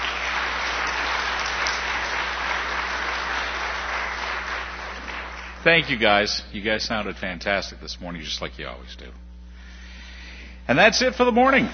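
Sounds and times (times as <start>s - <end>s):
church audience applause: 0.0s - 6.2s
speech: 5.6s - 9.2s, 10.7s - 11.7s.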